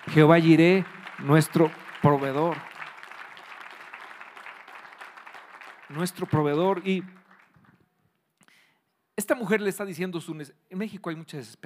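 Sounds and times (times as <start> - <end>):
applause: 0.0 - 8.0
speech: 0.2 - 2.7, 5.9 - 7.2, 9.2 - 11.6.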